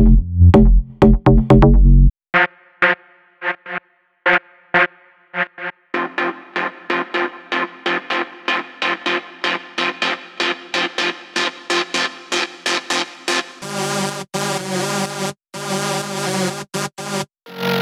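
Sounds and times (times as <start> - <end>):
jackin house groove: 0.0 - 2.1, 3.6 - 14.2.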